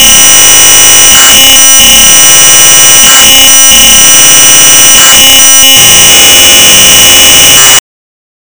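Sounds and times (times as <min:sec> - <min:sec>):
3600 baud modem data tones: 0:00.0 - 0:07.9.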